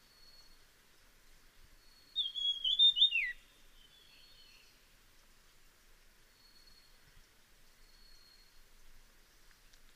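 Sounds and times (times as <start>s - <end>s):
Dusky fulvetta high whistle: 2.0s - 4.4s.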